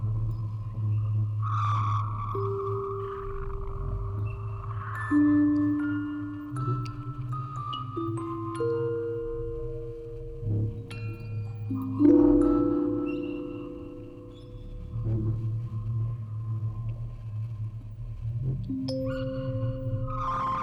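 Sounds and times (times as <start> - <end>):
field recording: 0.0 - 20.6
music box quartet playing: 2.4 - 15.6.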